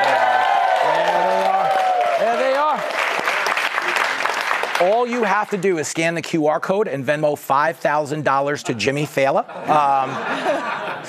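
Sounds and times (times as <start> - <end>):
high whoops and hollering voices: 0.0 - 2.6
studio audience cheering and applauding: 0.0 - 5.6
speech: 4.8 - 11.0
laughter: 9.4 - 11.0.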